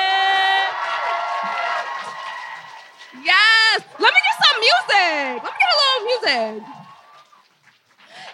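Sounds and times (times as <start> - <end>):
live audience applause: 0.0 - 8.2.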